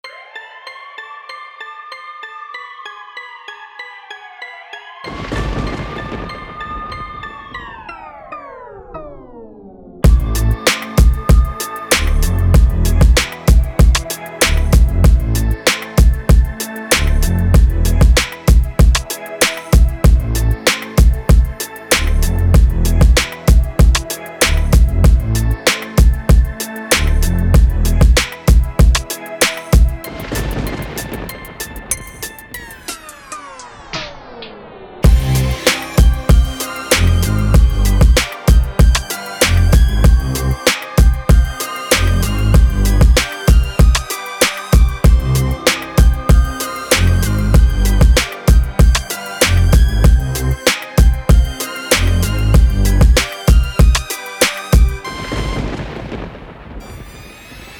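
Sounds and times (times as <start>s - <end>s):
trap beat: 10.0s - 30.1s, 35.0s - 55.0s.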